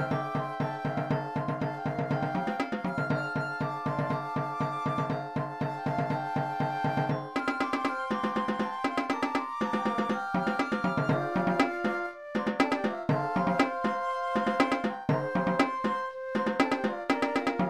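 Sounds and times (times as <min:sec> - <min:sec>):
quint toms: 0:00.0 - 0:17.6.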